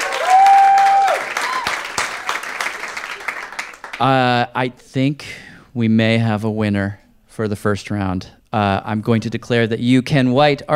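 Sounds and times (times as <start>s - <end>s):
whistle or cheer: 0.0s - 2.0s
sparse polite audience applause: 0.0s - 4.2s
speech: 4.0s - 10.7s.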